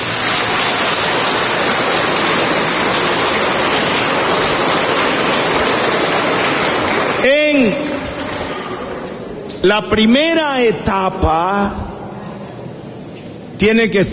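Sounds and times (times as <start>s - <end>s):
audience applause: 0.0s - 9.2s
speech: 9.6s - 11.8s, 13.6s - 14.1s.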